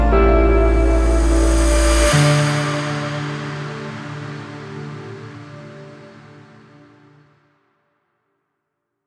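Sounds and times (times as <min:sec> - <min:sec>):
suspense intro music: 0:00.0 - 0:07.2.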